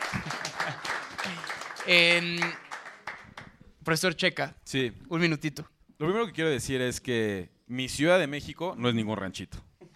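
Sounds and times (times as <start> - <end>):
audience applause: 0.0 - 3.5
speech: 1.9 - 2.6, 3.9 - 9.6.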